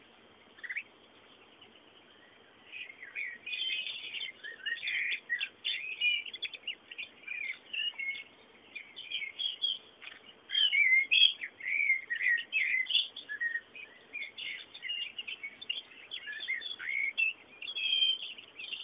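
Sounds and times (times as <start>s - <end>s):
birds chirping and warbling: 0.0s - 18.8s
faint hiss: 0.0s - 18.8s.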